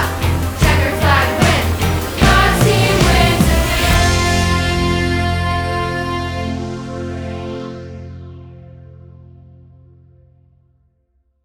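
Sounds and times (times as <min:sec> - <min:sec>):
person singing with a band: 0:00.0 - 0:07.1
band playing: 0:00.0 - 0:08.4.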